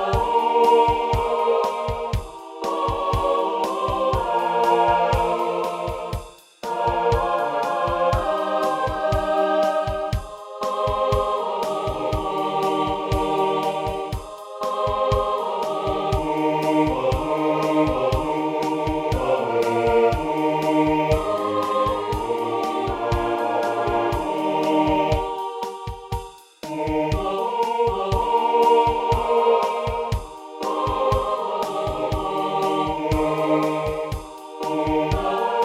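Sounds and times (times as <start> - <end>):
drums: 0.0 - 35.6.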